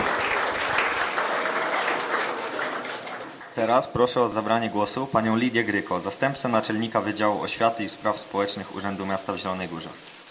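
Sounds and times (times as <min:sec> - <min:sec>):
crowd applause: 0:00.0 - 0:03.9
speech: 0:03.6 - 0:10.2.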